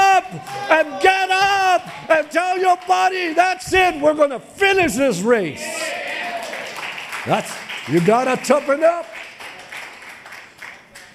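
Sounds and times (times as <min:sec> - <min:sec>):
audience applause, women clapping: 0:00.0 - 0:03.4, 0:05.7 - 0:11.1
speech: 0:00.4 - 0:01.1, 0:02.5 - 0:06.0, 0:07.2 - 0:09.2.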